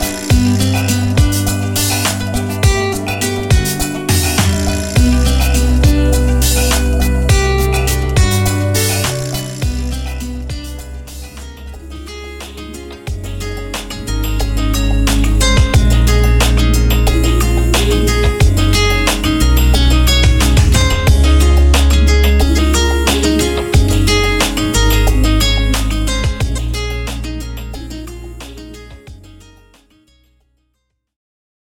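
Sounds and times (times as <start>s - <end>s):
indie folk pop music: 0.0s - 30.1s.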